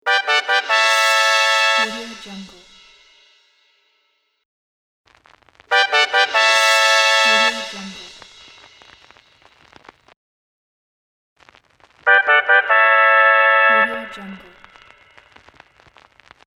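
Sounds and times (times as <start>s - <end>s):
level complete brass jingle: 0.0s - 3.4s, 5.7s - 8.8s, 12.1s - 15.0s.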